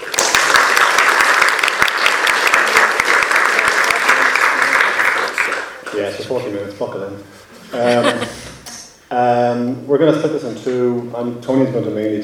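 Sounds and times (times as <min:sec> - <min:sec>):
audience applauding to welcome two presenters before a cinema talk: 0:00.0 - 0:05.9
speech: 0:06.0 - 0:08.3, 0:09.1 - 0:12.2
laughter: 0:07.6 - 0:08.9.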